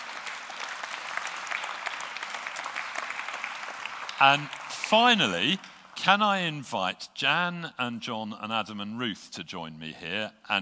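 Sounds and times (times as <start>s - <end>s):
round of applause: 0.0s - 6.6s
speech: 4.2s - 10.6s.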